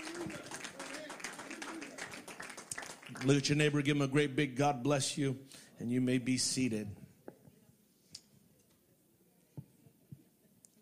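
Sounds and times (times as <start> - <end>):
audience clapping hands: 0.0 - 4.0
speech: 3.2 - 7.0.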